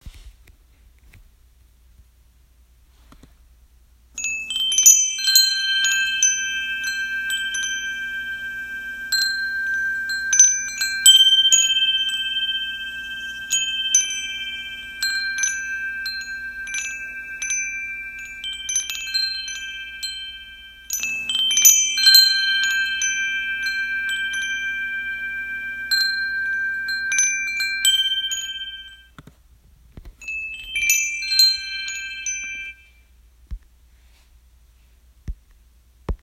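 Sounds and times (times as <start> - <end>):
jade chimes: 4.2 - 29.2, 30.2 - 33.2.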